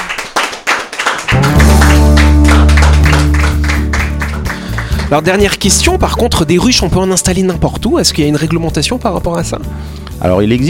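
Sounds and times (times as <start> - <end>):
audience applauding the guest: 0.0 - 5.5
speech: 5.1 - 10.6.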